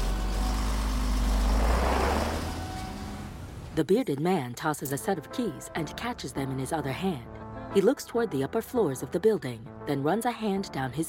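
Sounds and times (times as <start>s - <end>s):
moving truck engine rumbling as it drives away: 0.0s - 3.8s
speech: 3.8s - 11.0s.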